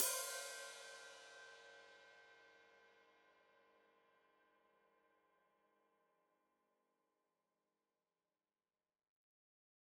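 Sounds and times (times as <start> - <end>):
open hi-hat played with foot: 0.0 - 1.5.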